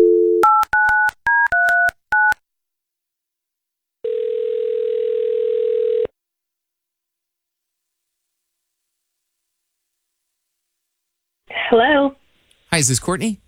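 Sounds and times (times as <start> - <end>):
long steady telephone ringing tone: 0.0 - 0.9, 4.0 - 6.1
dial tone: 0.0 - 2.4, 4.0 - 6.1
speech: 11.7 - 12.2, 12.8 - 13.4.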